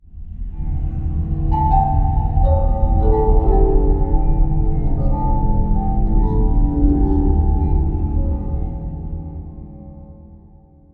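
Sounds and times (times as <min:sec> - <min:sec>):
ambient bells: 0:01.5 - 0:09.3.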